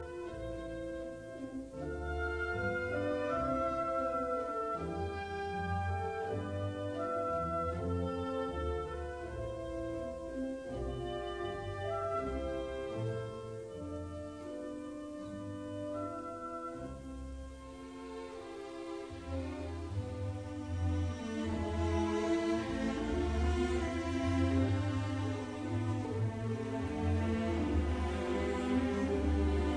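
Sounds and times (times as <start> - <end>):
symphony orchestra in C major: 0.0 - 29.7.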